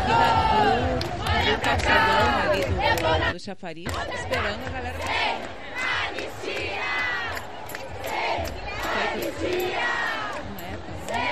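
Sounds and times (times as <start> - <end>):
crowd chanting battle cries: 0.0 - 3.3, 3.9 - 11.3
speech: 1.6 - 5.6, 8.9 - 10.2.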